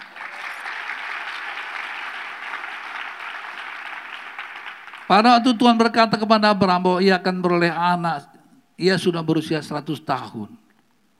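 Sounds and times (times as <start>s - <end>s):
audience applause: 0.0s - 5.1s
speech: 5.1s - 10.6s.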